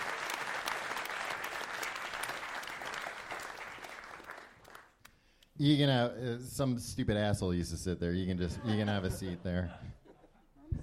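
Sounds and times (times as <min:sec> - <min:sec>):
theater audience applause at a live comedy show in London: 0:00.0 - 0:05.0
speech: 0:05.6 - 0:10.0
laughter: 0:08.4 - 0:10.8.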